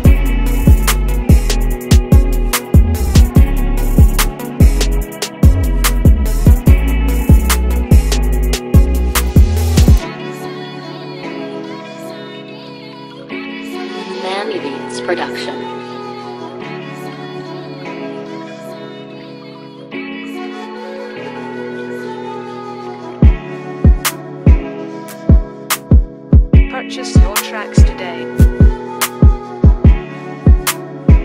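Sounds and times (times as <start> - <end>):
trap beat instrumental: 0.0 - 10.0, 23.2 - 31.2.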